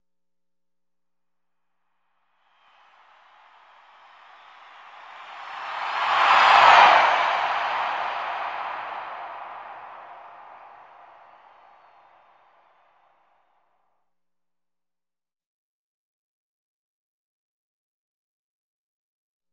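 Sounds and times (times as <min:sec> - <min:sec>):
arena crowd huge cheer with doppler by and long decay: 0:02.7 - 0:12.9.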